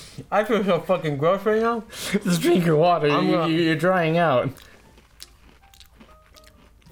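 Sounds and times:
speech: 0:00.2 - 0:04.7
someone chewing a double decker cookie sandwich: 0:04.4 - 0:06.9.

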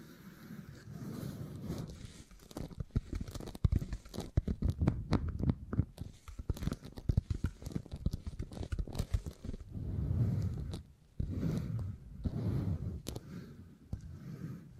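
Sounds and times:
beeswax low rubbing and squishing: 0:00.0 - 0:14.7
beeswax sticky crackles and scrapes: 0:00.0 - 0:14.7.

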